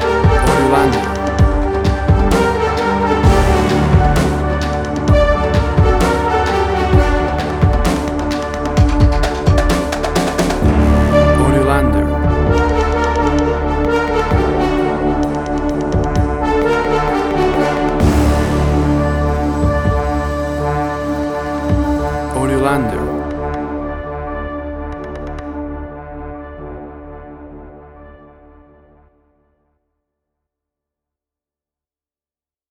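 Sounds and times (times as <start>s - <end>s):
drumcore music: 0.0s - 23.6s.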